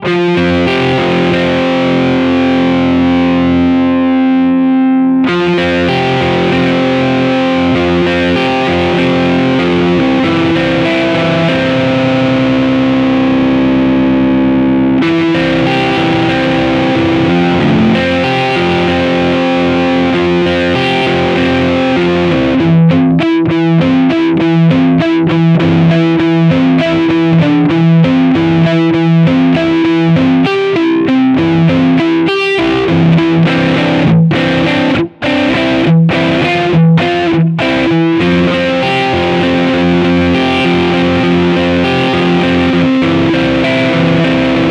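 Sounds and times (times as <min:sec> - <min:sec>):
Yamaha THR30 II modern lead guitar tone: 0:00.0 - 0:44.6.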